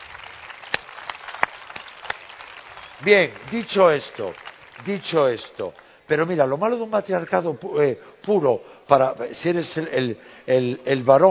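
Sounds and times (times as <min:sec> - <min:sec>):
thin scattered audience applause: 0:00.0 - 0:06.0
speech: 0:03.0 - 0:11.2.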